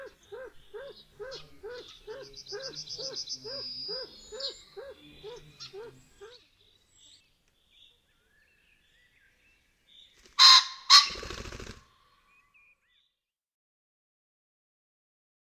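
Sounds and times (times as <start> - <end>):
pheasant: 0.0 - 6.5, 9.9 - 13.0.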